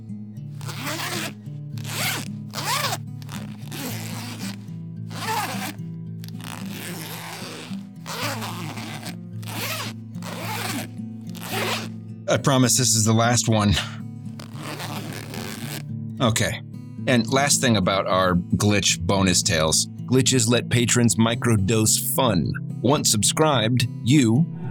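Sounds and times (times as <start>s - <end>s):
zippers being zipped on jumpsuit: 0.5s - 12.0s, 14.4s - 15.9s
speech: 12.3s - 14.0s, 16.2s - 24.6s.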